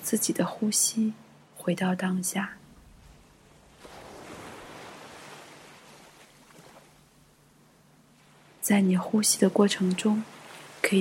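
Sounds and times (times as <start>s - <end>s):
ocean waves washing onto the shore: 0.0s - 10.9s
speech: 0.1s - 2.6s, 8.7s - 10.9s
faint low rumble: 2.6s - 4.8s.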